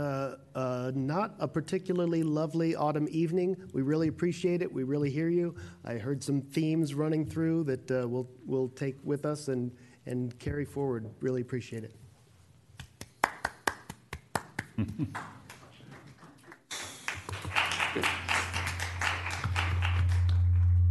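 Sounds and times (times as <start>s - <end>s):
speech: 0.0s - 12.0s, 14.8s - 15.4s, 18.0s - 18.2s
audience clapping: 12.8s - 20.8s.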